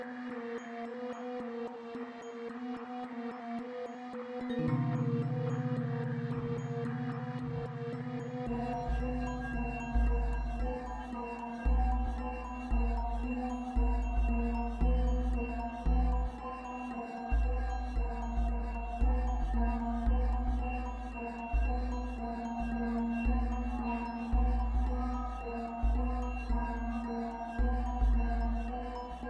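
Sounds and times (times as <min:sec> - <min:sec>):
jungle temple ambience: 0:00.0 - 0:29.2.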